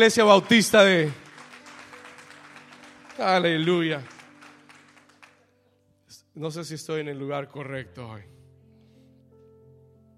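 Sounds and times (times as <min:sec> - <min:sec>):
speech: 0:00.0 - 0:01.2, 0:03.2 - 0:04.1, 0:06.4 - 0:08.4
audience applause: 0:00.0 - 0:05.4.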